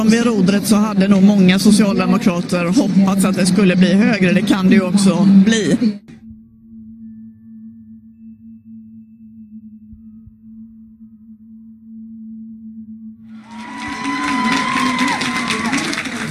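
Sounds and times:
speech: 0:00.0 - 0:06.1
steady low hum: 0:00.0 - 0:16.2
crowd cheering at election night party: 0:13.4 - 0:16.2.

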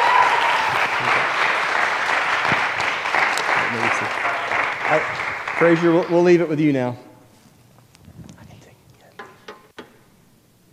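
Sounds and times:
crowd applauding: 0:00.0 - 0:06.5
speech: 0:04.9 - 0:07.0.

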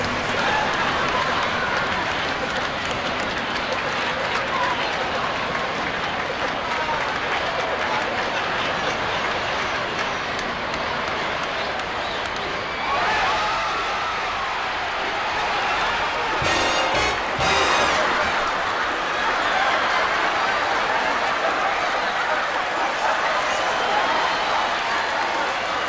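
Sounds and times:
theatre audience applauding: 0:00.0 - 0:13.6, 0:14.3 - 0:25.8
theatre audience laughing: 0:16.4 - 0:18.8.

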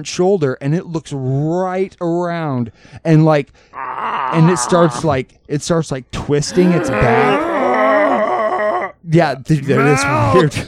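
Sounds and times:
speech: 0:00.0 - 0:07.5, 0:09.1 - 0:10.6
person imitating cow bellow: 0:03.8 - 0:05.1, 0:06.5 - 0:09.0, 0:09.7 - 0:10.6.

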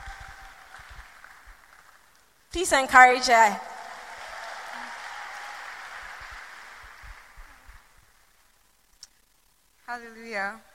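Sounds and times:
church congregation applauding to welcome a speaker: 0:00.0 - 0:02.4, 0:03.6 - 0:08.4
speech: 0:02.5 - 0:03.7, 0:10.0 - 0:10.7.

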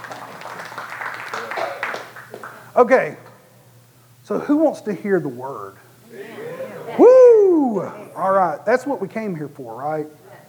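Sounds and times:
crowd clapping and cheering: 0:00.0 - 0:02.7
speech: 0:02.8 - 0:03.2, 0:04.3 - 0:06.3, 0:07.0 - 0:10.2.

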